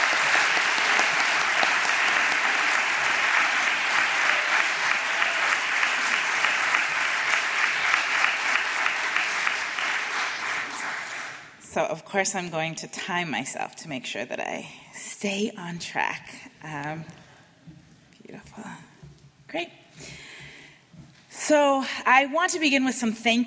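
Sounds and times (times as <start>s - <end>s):
audience applause welcoming a reverend: 0.0s - 11.6s
speech: 11.8s - 17.2s, 19.5s - 20.2s, 21.5s - 23.4s.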